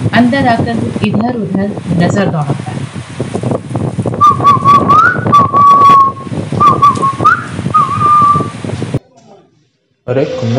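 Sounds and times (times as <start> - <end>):
speech: 0.2 - 2.8, 10.1 - 10.5
man whistling a tune: 4.2 - 8.6.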